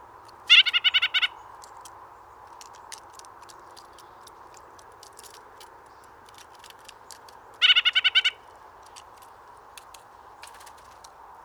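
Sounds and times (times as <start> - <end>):
White-breasted Nuthatch call: 0.5 - 1.4, 7.6 - 8.5.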